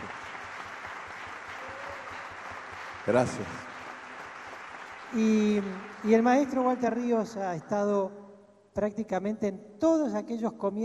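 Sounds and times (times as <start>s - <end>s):
applause: 0.0s - 8.0s
speech: 3.1s - 3.7s, 5.1s - 8.2s, 8.8s - 10.8s.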